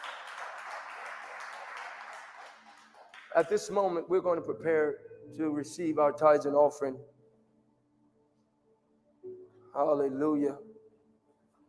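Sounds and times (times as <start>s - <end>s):
audience hand clap: 0.0s - 4.0s
speech: 3.4s - 7.2s, 9.8s - 10.7s.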